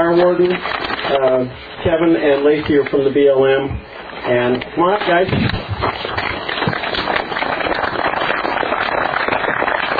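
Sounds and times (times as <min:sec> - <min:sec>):
speech: 0:00.1 - 0:06.2
audience applause: 0:06.6 - 0:09.9.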